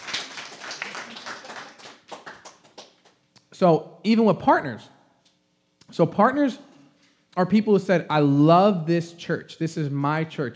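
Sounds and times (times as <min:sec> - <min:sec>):
audience clapping: 0:00.0 - 0:03.2
speech: 0:03.6 - 0:04.9, 0:06.0 - 0:06.7, 0:07.4 - 0:10.5.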